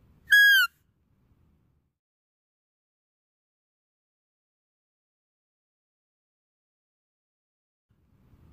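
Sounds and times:
deer whistled calls: 0.3 - 0.7.

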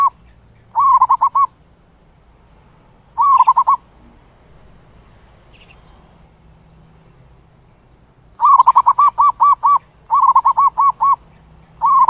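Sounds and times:
zebra dove cooing: 0.0 - 1.5, 3.2 - 3.9, 8.4 - 11.2, 11.8 - 12.0.

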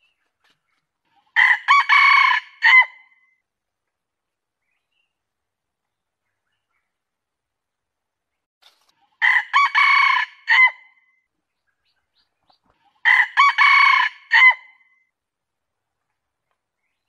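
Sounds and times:
junglefowl crowing: 1.4 - 3.0, 9.2 - 10.9, 13.0 - 14.8.

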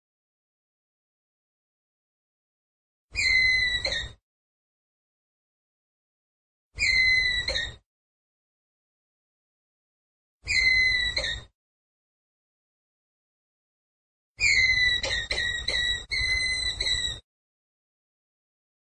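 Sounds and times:
ground squirrel whistled call: 3.2 - 4.2, 6.8 - 7.8, 10.5 - 11.5, 14.4 - 17.2.

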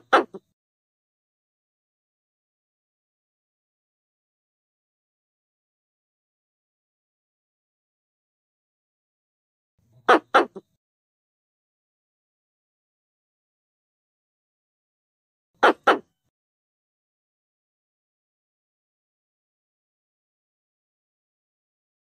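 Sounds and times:
Pallas's squirrel rasping chatter bursts: 0.0 - 0.4, 10.0 - 10.7, 15.6 - 16.1.

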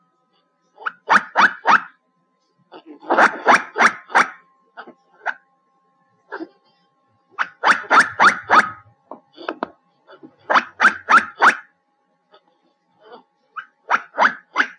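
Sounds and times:
black giant squirrel calls: 0.8 - 2.0, 3.0 - 5.4, 7.4 - 8.9, 10.5 - 11.7, 13.6 - 14.7.

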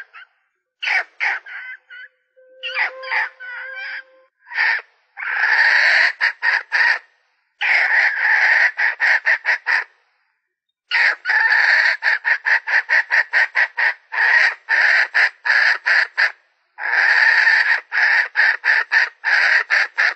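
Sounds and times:
Red junglefowl hen cackling: 0.0 - 7.0, 7.6 - 9.9, 10.9 - 20.1.

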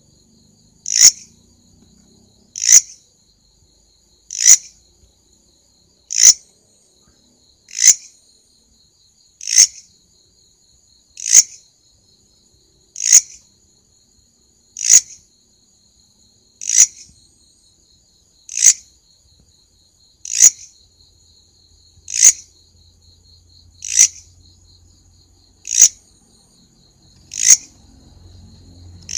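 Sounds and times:
grasshopper stridulation rasping: 0.8 - 1.3, 2.5 - 3.0, 4.3 - 4.8, 6.1 - 6.4, 7.7 - 8.1, 9.4 - 9.8, 11.2 - 11.6, 13.0 - 13.4, 14.8 - 15.2, 16.6 - 17.1, 18.5 - 18.9, 20.2 - 20.7, 22.1 - 22.5, 23.8 - 24.3, 25.6 - 26.1, 27.0 - 27.9, 28.5 - 29.1.

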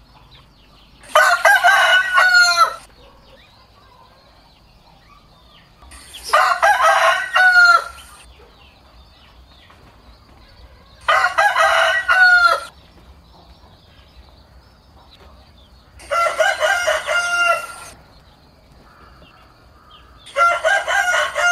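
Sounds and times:
rooster crowing: 1.0 - 4.5, 6.2 - 8.3, 10.6 - 12.7, 16.0 - 18.0, 18.8 - 21.4.

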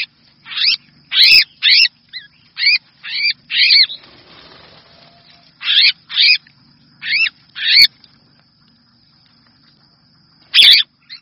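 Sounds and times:
red-whiskered bulbul distress call: 0.0 - 6.4, 10.5 - 11.2.

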